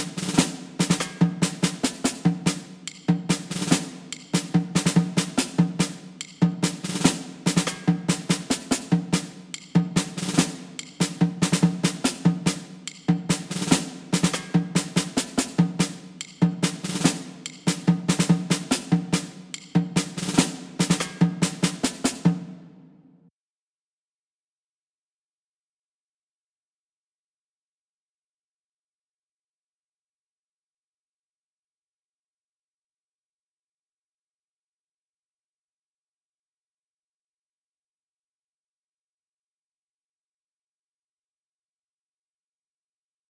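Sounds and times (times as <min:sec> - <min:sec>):
drums: 0:00.0 - 0:23.2.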